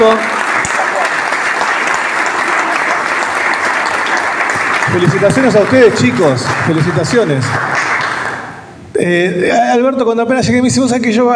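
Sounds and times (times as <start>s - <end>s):
speech: 0.0s - 0.3s, 5.0s - 7.8s, 9.0s - 11.3s
applause: 0.0s - 8.7s.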